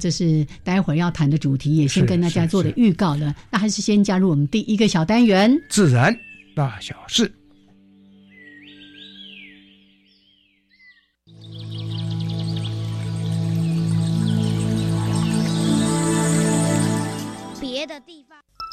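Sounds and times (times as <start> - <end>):
speech: 0.0 - 7.4, 17.8 - 18.2
bird chirps and whistled trills: 4.5 - 17.5.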